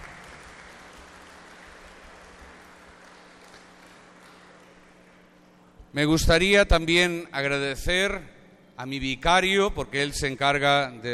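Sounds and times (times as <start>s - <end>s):
audience applause: 0.0s - 5.3s
speech: 6.0s - 11.1s.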